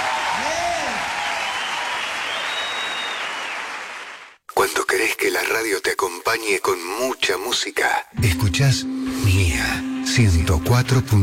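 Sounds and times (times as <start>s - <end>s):
audience applause: 0.0s - 4.4s
swooping whistle-like tone: 2.2s - 3.6s
speech: 5.4s - 11.2s.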